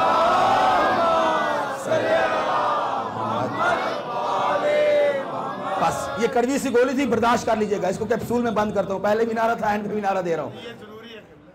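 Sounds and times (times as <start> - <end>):
crowd reciting durood in unison: 0.0 - 6.6
speech: 6.2 - 10.9.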